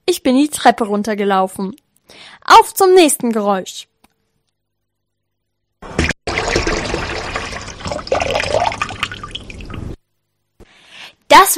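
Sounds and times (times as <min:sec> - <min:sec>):
speech: 0:00.2 - 0:03.9, 0:11.3 - 0:11.5
running water tap: 0:05.9 - 0:10.0.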